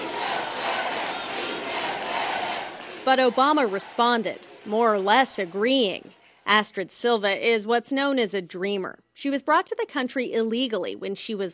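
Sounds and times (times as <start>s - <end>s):
crowd shouting down a heckler at a presidential speech: 0.0s - 6.2s
speech: 3.1s - 11.5s.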